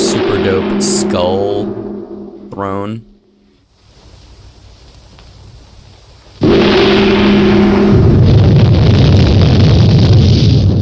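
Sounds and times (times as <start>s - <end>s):
burst of fire and smoke as something hits the ground: 0.0s - 3.0s, 6.4s - 10.7s
steady low hum: 0.0s - 3.6s, 6.4s - 10.2s
speech: 0.2s - 3.1s.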